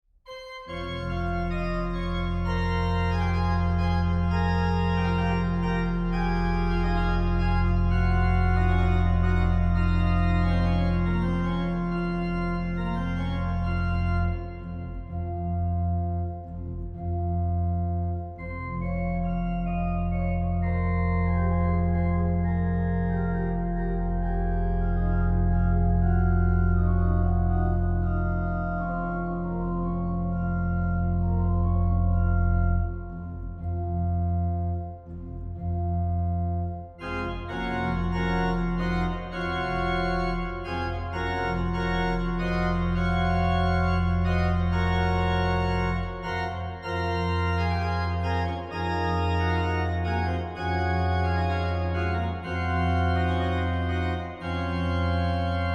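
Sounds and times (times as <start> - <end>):
organ gavotte in F minor: 0.3 - 55.7.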